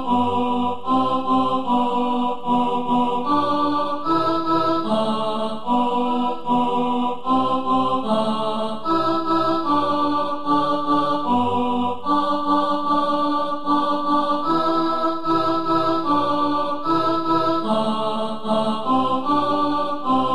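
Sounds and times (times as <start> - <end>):
alto choir singing: 0.0 - 20.3.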